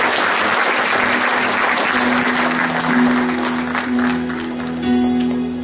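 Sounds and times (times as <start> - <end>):
audience clapping: 0.0 - 5.4.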